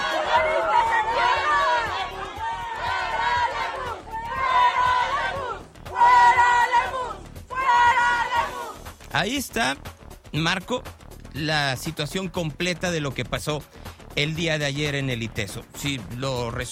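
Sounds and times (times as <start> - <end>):
crowd of students shouting: 0.0 - 8.8
speech: 9.2 - 16.7.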